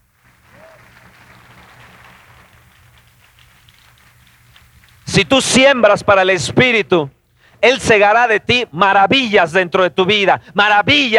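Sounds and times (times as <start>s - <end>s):
audience applauding: 0.0s - 5.1s
speech: 5.2s - 11.1s.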